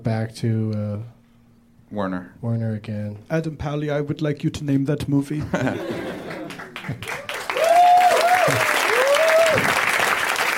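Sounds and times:
speech: 0.0 - 1.2, 1.9 - 7.2
laughter: 5.4 - 7.2
audience clapping excitedly: 5.8 - 10.5.

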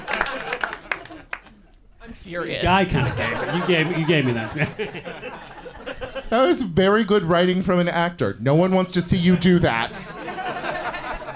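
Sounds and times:
audience applause: 0.0 - 1.6
laughter: 0.0 - 1.7, 2.6 - 6.7, 9.2 - 11.3
speech: 2.3 - 5.7, 6.3 - 10.2.

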